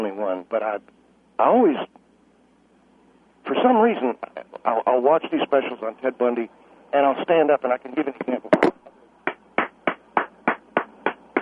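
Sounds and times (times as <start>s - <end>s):
speech: 0.4s - 2.0s, 3.5s - 8.7s
person clapping hands: 9.3s - 11.3s.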